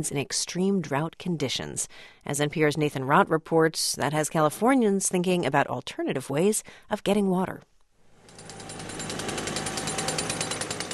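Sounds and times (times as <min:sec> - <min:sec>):
speech: 0:00.0 - 0:07.7
jackhammer pounding at a construction site: 0:08.2 - 0:10.9.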